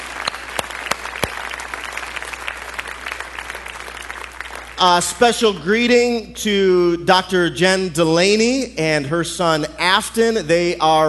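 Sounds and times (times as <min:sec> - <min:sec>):
audience applause: 0:00.0 - 0:05.2
speech: 0:04.8 - 0:11.0.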